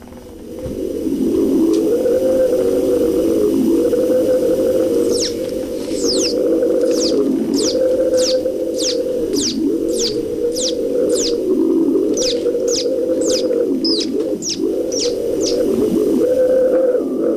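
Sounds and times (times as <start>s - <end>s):
instrument imitating wind: 1.1s - 16.7s
sharp high chirps: 5.1s - 11.4s, 12.2s - 15.6s.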